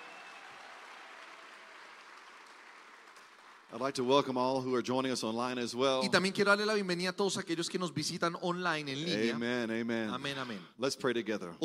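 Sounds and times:
audience applause: 0.0 - 4.0
speech: 3.7 - 11.6.

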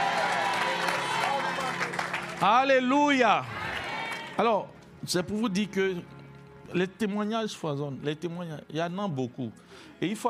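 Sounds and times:
church congregation applauding and cheering in praise: 0.0 - 4.8
speech: 2.4 - 3.6, 4.4 - 10.2.

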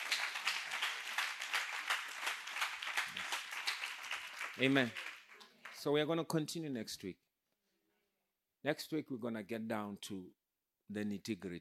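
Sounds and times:
crowd clapping: 0.0 - 6.0
speech: 4.6 - 5.0, 5.8 - 7.2, 8.6 - 11.5.

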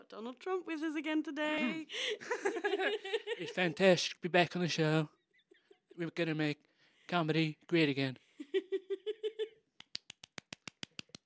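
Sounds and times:
speech: 0.1 - 5.2, 6.0 - 8.2
laughter: 1.6 - 4.0
hand clapping: 9.8 - 11.2.

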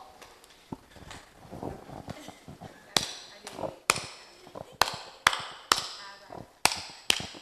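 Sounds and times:
rough hand clapping: 2.9 - 7.4.

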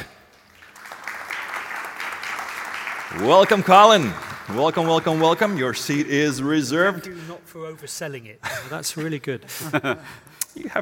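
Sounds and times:
conference audience applause welcoming a moderator onto the stage: 0.0 - 6.7
speech: 3.1 - 10.7.

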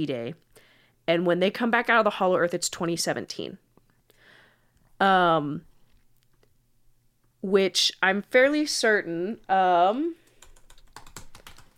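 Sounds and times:
speech: 0.0 - 3.6, 5.0 - 5.7, 7.4 - 10.2
typing on a computer keyboard: 10.2 - 11.7.

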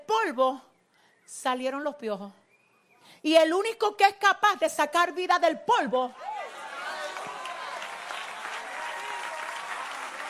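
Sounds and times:
speech: 0.3 - 0.7, 1.3 - 2.4, 3.2 - 6.3
audience applause: 6.4 - 10.2.

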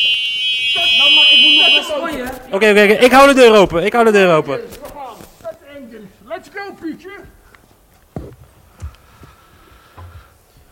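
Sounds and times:
toeter horn being sounded: 0.0 - 2.2
speech: 1.8 - 4.8.

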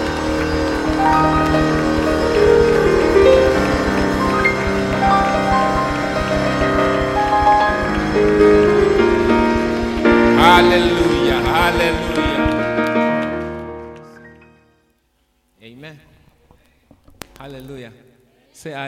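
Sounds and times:
audience clapping hands: 0.0 - 14.4
speech: 18.6 - 18.8.

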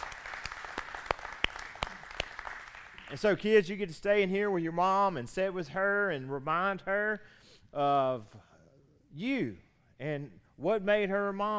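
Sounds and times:
church congregation clapping for Mother's Day: 0.0 - 3.5
speech: 3.1 - 8.5, 9.1 - 11.5.

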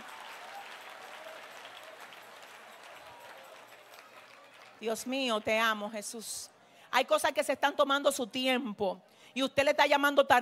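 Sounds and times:
audience applause: 0.0 - 4.8
speech: 4.8 - 10.4.

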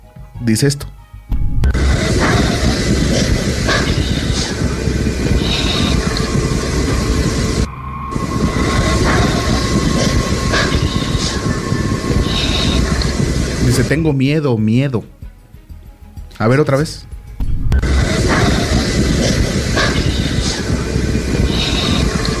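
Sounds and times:
speech: 0.4 - 1.0, 13.8 - 15.2, 16.4 - 17.1
metro train roaring through a subway station: 1.7 - 14.2, 17.8 - 22.3.

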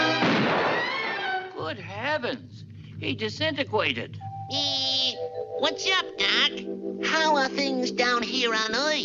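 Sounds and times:
cartoon gunshot from a hunting gun: 0.1 - 1.4
speech: 2.2 - 9.0
tonal music-like sound: 2.4 - 8.5.

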